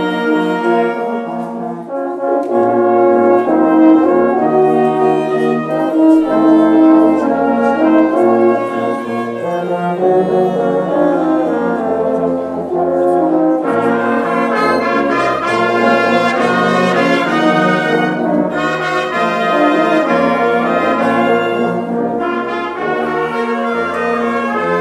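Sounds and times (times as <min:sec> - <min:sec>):
brass band playing: 0:00.0 - 0:24.7.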